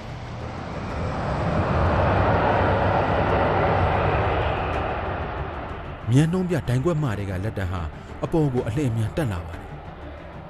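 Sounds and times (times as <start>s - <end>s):
J-8 jet fighter accelerating along a runway at full thrust: 0.0s - 6.0s
speech: 6.1s - 9.7s.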